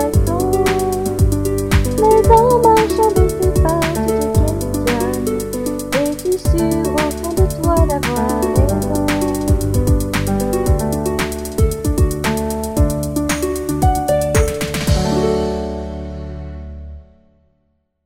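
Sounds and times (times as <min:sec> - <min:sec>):
R&B music: 0:00.0 - 0:17.4.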